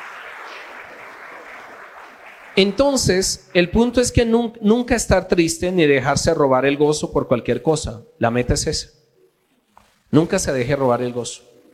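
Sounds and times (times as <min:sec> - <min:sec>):
audience applause: 0:00.0 - 0:03.2
speech: 0:02.6 - 0:09.0, 0:10.1 - 0:11.5.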